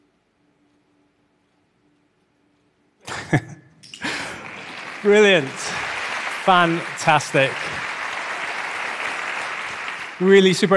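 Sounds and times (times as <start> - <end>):
speech: 3.3 - 3.6, 5.0 - 5.8, 6.4 - 7.7, 10.2 - 10.7
audience applause: 4.0 - 10.7.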